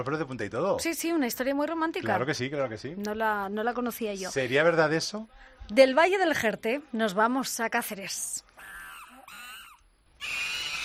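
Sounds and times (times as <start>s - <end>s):
speech: 0.0s - 8.5s
monkeys calling: 8.6s - 10.8s.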